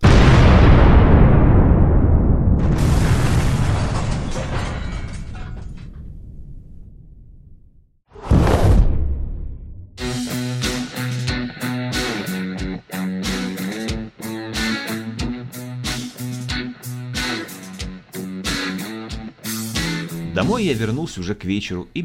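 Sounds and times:
hiss of scattering debris: 0.0 - 6.4
quarry blasting explosion: 0.0 - 10.0
speech: 20.5 - 22.0.

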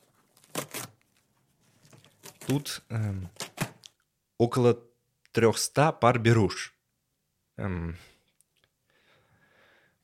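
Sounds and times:
parcel packaging tearing open: 0.0 - 1.2, 1.8 - 3.9
paper or plastic rustling: 0.0 - 3.9
speech: 2.5 - 3.4, 4.4 - 6.8, 7.6 - 8.1.

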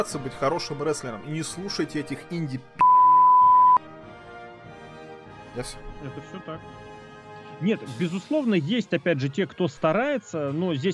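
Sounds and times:
speech: 0.0 - 2.8, 5.6 - 6.9, 7.6 - 10.9
censor beep: 2.8 - 3.8.

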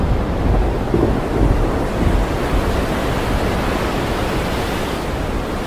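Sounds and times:
rain near the sea: 0.0 - 5.5.

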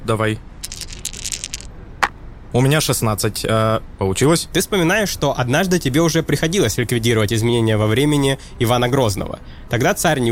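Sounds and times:
speech: 0.1 - 0.5, 2.5 - 10.3
dice being rolled: 0.6 - 2.2.

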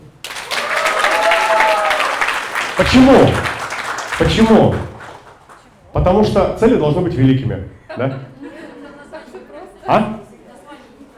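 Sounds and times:
crowd applause: 0.0 - 5.7
speech: 2.8 - 3.5, 4.2 - 4.9, 6.0 - 8.3, 9.9 - 10.1.

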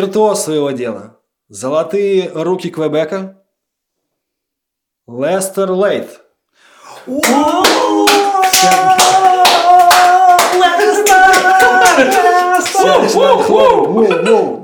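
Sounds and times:
speech: 0.0 - 3.4, 5.1 - 6.2, 7.1 - 9.5, 10.6 - 14.6
sharp hand claps: 7.0 - 13.1
laughter: 7.1 - 14.6.

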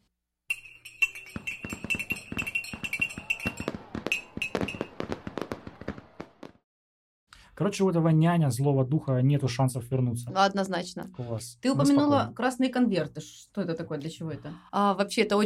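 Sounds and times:
string of firecrackers popping: 1.2 - 6.6
speech: 7.6 - 15.4.

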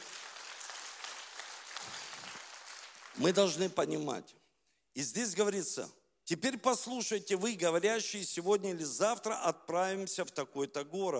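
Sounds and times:
audience applause: 0.0 - 3.6
speech: 3.2 - 4.4, 5.0 - 11.1.

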